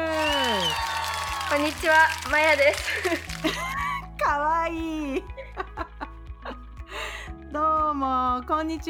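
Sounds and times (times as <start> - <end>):
audience applause: 0.1 - 3.4
speech: 1.5 - 3.7, 4.6 - 5.4, 7.5 - 8.8
laughter: 2.9 - 4.0.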